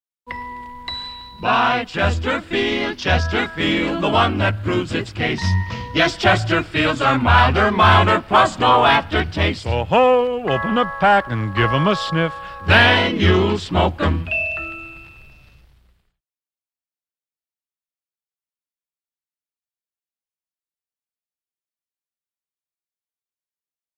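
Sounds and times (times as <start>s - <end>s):
jingle: 0.3s - 15.6s.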